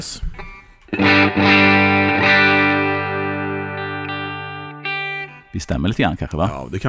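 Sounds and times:
speech: 0.0 - 1.8, 5.6 - 6.8
clean electric guitar on the neck pickup strumming chords: 0.9 - 5.6.

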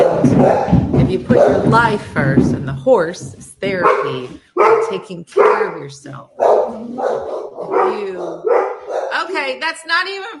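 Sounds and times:
dog barking at a passing truck: 0.0 - 1.7, 3.8 - 9.3
speech: 0.3 - 10.3.

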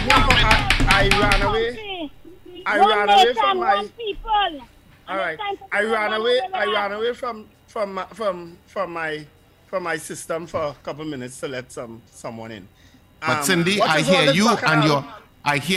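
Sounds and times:
thumping on a desk: 0.0 - 1.6
speech: 1.0 - 15.7.

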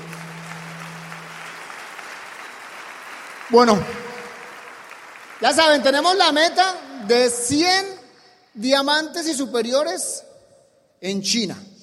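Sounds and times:
low steady hum: 0.0 - 1.8
crowd applauding: 0.0 - 8.2
speech: 3.5 - 4.1, 5.4 - 8.0, 8.6 - 10.3, 11.0 - 11.7.

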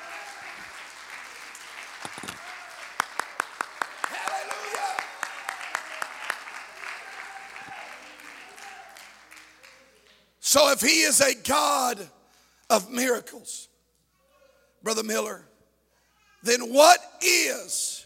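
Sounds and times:
audience clapping: 0.0 - 10.4
speech: 10.5 - 13.7, 14.8 - 15.5, 16.4 - 18.0.

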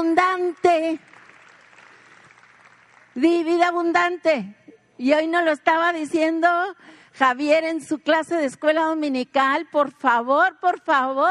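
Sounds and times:
speech: 0.0 - 1.1, 3.2 - 11.2
audience applause: 1.0 - 3.2.

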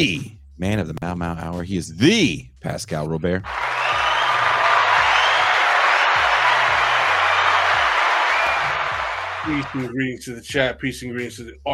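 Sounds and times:
speech: 0.0 - 4.0, 9.4 - 11.7
audience applause: 3.5 - 9.9.

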